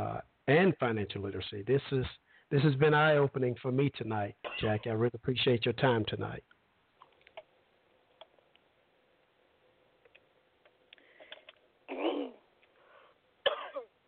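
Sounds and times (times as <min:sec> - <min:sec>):
speech: 0:00.5 - 0:06.5
person coughing after choking during an interview: 0:04.4 - 0:04.8, 0:11.9 - 0:12.4, 0:13.4 - 0:13.9.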